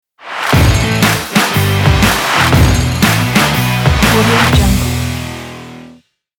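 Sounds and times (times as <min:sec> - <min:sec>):
upbeat rock logo music: 0:00.5 - 0:06.0.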